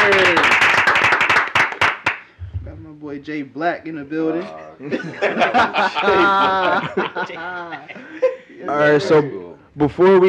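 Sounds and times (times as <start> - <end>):
several people clapping hands: 0.0 - 2.4
speech: 3.2 - 10.2
laughter: 4.8 - 8.6.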